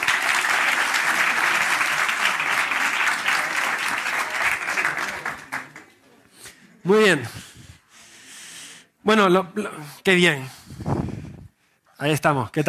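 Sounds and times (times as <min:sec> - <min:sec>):
audience applause for three volunteers: 0:00.0 - 0:06.0
speech: 0:06.8 - 0:07.5, 0:09.0 - 0:10.6, 0:12.0 - 0:12.6.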